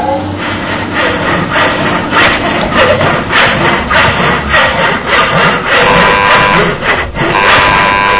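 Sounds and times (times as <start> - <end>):
saw: 0.1 - 8.1.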